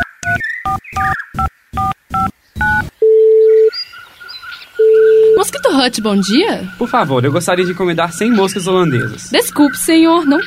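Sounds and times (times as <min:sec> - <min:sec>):
two-tone keypad beeps of a phone number being dialed: 0:00.0 - 0:03.7, 0:04.8 - 0:06.9
longer lower steady phone tone: 0:01.8 - 0:03.7, 0:04.8 - 0:06.0
speech: 0:05.8 - 0:10.4.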